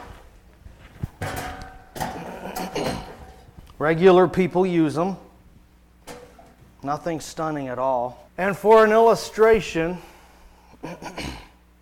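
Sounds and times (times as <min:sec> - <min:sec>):
chairs being set down: 0:01.0 - 0:03.6
speech: 0:03.8 - 0:05.2, 0:06.8 - 0:10.1, 0:10.8 - 0:11.1.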